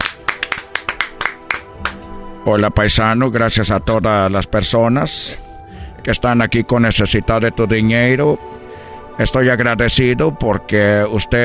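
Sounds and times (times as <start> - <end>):
audience applause: 0.0 - 2.1
speech: 2.4 - 8.5, 9.2 - 11.4.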